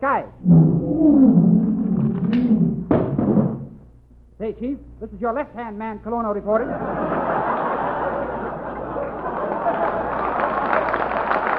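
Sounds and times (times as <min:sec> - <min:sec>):
speech: 0:00.0 - 0:01.6, 0:04.5 - 0:07.4
lion roaring in a cage: 0:00.4 - 0:03.7
laughter: 0:06.6 - 0:11.4.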